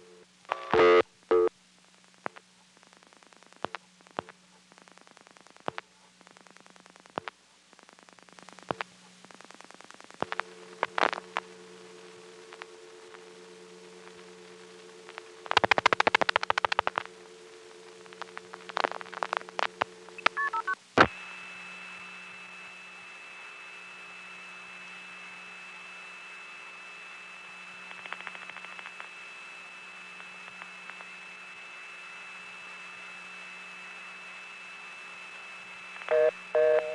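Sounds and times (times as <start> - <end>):
steady telephone tone: 0.0 - 1.5, 10.3 - 36.9.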